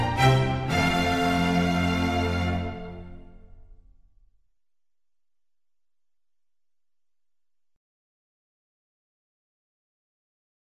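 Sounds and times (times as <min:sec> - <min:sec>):
concerto for strings in F major: 0:00.0 - 0:03.4.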